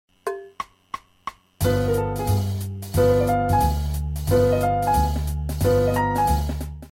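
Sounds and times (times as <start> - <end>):
four-note V jazz piano chord: 1.6 - 6.9.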